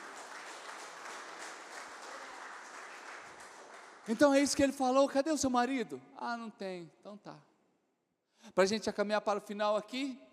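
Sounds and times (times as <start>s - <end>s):
audience applause: 0.0s - 4.6s
speech: 4.1s - 7.5s, 8.4s - 10.3s.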